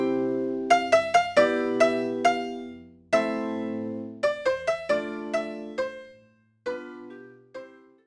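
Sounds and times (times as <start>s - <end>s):
sad music: 0.0s - 6.2s.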